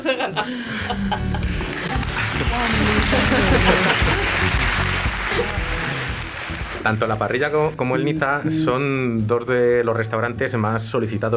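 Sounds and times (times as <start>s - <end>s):
speech: 0.0s - 4.6s, 6.8s - 11.3s
laughter: 0.0s - 8.4s
applause sound effect: 1.4s - 7.8s.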